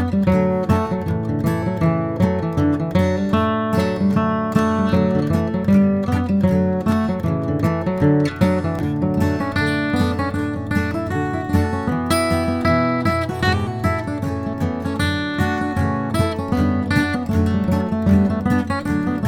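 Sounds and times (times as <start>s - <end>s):
bluegrass guitar playing a fiddle tune in C: 0.0s - 19.2s.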